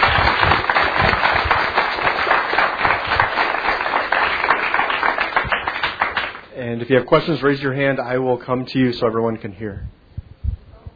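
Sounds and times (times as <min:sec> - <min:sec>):
crowd applauding: 0:00.0 - 0:06.4
speech: 0:06.8 - 0:10.0.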